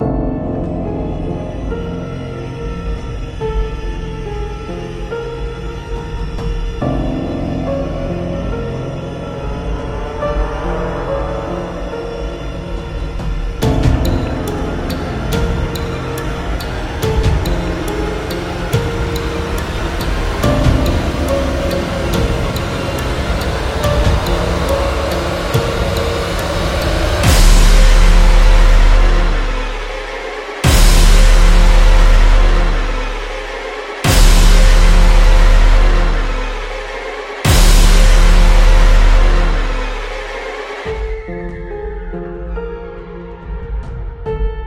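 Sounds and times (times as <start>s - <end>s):
suspense music: 0.0s - 44.6s.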